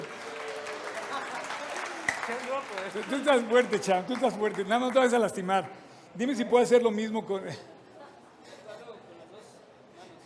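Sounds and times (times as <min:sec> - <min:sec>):
audience applause: 0:00.0 - 0:05.4
speech: 0:02.3 - 0:07.7.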